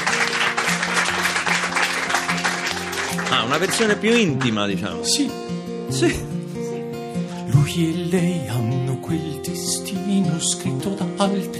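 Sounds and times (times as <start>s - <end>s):
studio applause: 0.0s - 4.9s
speech: 3.3s - 6.3s, 7.7s - 11.5s.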